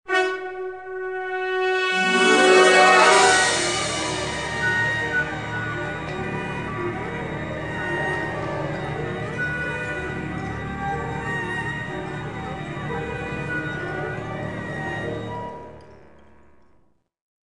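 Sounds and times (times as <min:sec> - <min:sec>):
death tune: 0:01.6 - 0:15.1.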